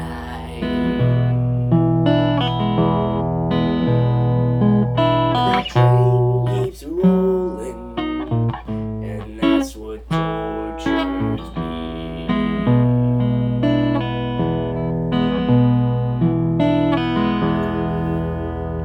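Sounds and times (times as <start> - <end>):
voice: 0.0 - 1.8, 5.4 - 8.4, 9.0 - 13.4
guitar: 0.0 - 18.8.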